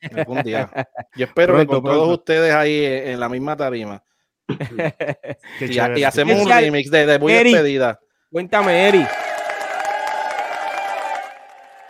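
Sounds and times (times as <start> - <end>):
laughter: 0.0 - 1.2, 4.5 - 5.6
speech: 0.0 - 9.3
cheering and whistles: 8.6 - 11.8
crowd applauding: 8.6 - 11.8.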